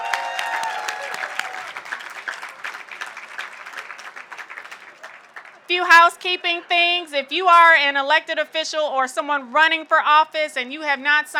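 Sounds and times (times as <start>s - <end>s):
audience applause: 0.0s - 5.7s
speech: 5.7s - 11.3s.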